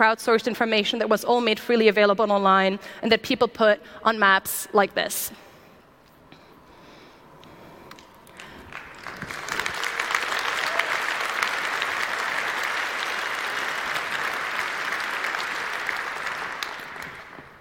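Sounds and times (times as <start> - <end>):
speech: 0.0 - 5.4
clapping: 7.9 - 17.5.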